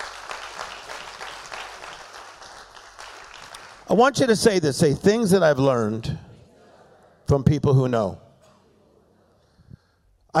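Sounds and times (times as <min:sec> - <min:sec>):
audience clapping hands: 0:00.0 - 0:04.0
speech: 0:03.9 - 0:06.2, 0:07.3 - 0:08.2.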